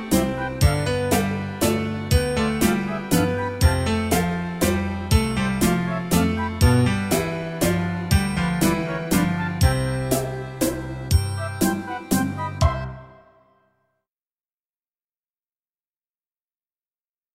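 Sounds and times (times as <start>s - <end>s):
waltz music: 0.0s - 13.4s.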